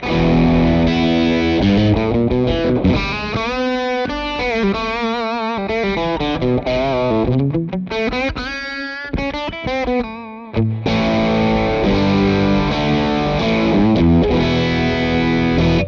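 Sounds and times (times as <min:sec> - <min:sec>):
overdriven Strat-style electric guitar on bridge pickup: 0:00.0 - 0:15.8.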